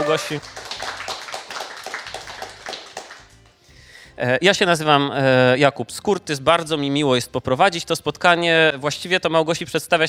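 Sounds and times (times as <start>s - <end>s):
crowd applause: 0.0s - 3.4s
speech: 0.1s - 0.8s, 4.2s - 10.0s.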